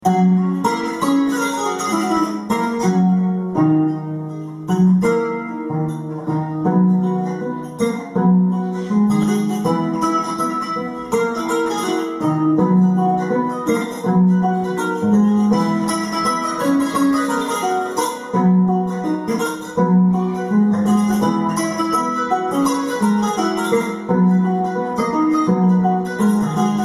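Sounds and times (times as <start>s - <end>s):
kora playing: 0.0s - 26.8s.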